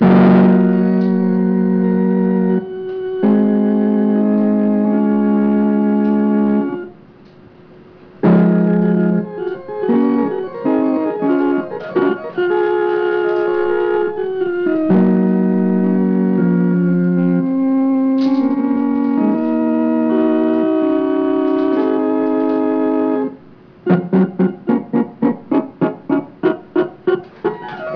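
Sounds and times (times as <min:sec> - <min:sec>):
organ: 0:00.0 - 0:07.4, 0:08.2 - 0:27.9.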